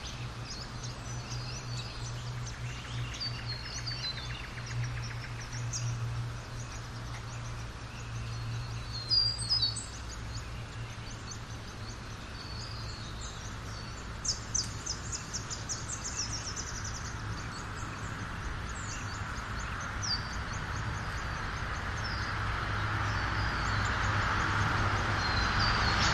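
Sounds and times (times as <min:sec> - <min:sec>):
birds at a rest area in Australia: 0:00.0 - 0:26.1
traffic passing a rest area in Australia: 0:00.0 - 0:26.1
wind in trees in Australia: 0:00.0 - 0:26.1.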